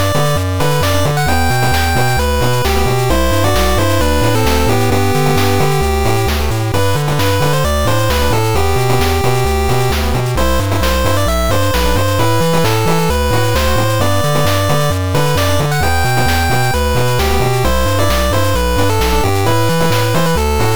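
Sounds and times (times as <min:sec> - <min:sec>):
8-bit fanfare: 0:00.0 - 0:20.7.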